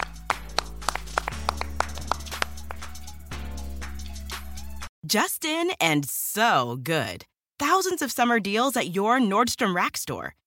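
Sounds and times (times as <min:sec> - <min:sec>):
hand clapping: 0:00.0 - 0:03.1
speech: 0:05.1 - 0:10.4.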